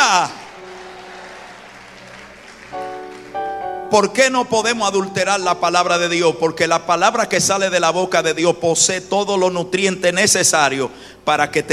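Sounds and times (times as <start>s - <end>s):
audience applauding: 0.0s - 5.0s
speech: 3.9s - 11.7s.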